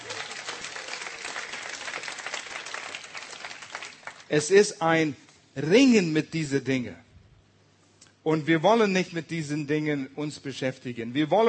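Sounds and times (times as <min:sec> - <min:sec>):
audience applause: 0:00.0 - 0:04.3
speech: 0:04.3 - 0:07.0, 0:08.2 - 0:11.4.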